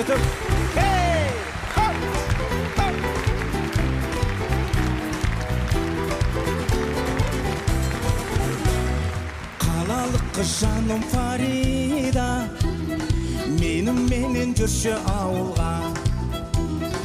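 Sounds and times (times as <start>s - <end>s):
speech: 0.0s - 0.8s, 10.4s - 12.6s, 13.7s - 15.9s
person singing: 0.0s - 2.2s, 9.6s - 16.2s
audience clapping along in rhythm with upbeat live music: 0.0s - 12.3s
upbeat live band music: 0.0s - 17.0s.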